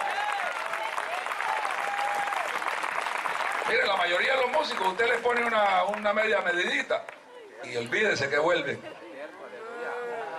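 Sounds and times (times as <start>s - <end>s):
faint high whistles or cheers: 0.0s - 2.6s
audience applause: 0.0s - 6.2s
speech: 3.7s - 9.0s.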